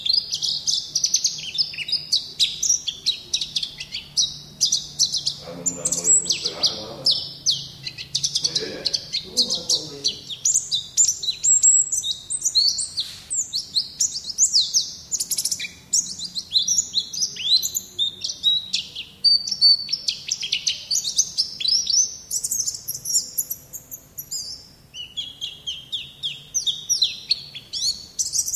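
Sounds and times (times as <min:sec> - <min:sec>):
Indonesian white-eye singing in ngalas song style: 0:00.0 - 0:28.5.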